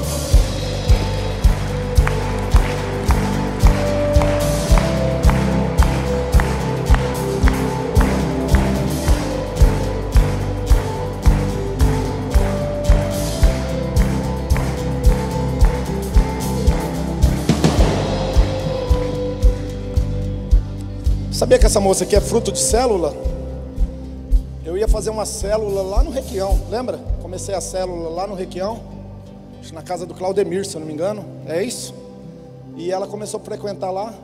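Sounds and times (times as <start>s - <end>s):
audience applauding: 0.0s - 20.8s
speech: 21.6s - 23.3s, 24.8s - 28.9s, 29.6s - 32.0s, 32.8s - 34.2s.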